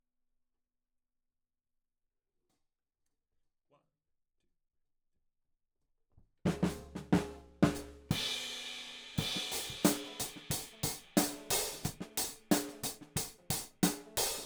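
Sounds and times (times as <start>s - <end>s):
hi-hat: 8.1s - 14.4s.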